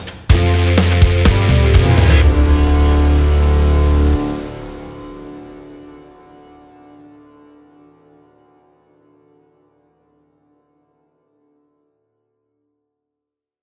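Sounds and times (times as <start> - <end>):
powerful rock guitar: 0.3 - 7.3
epic strings playing: 0.3 - 9.0.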